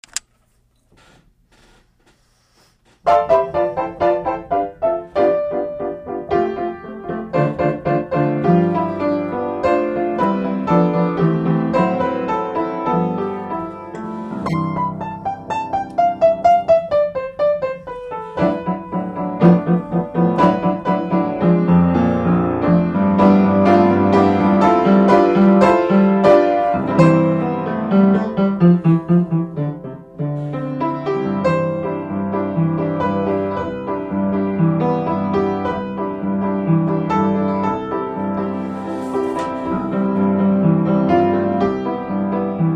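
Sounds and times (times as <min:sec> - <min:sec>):
piano: 0:03.0 - 0:42.7.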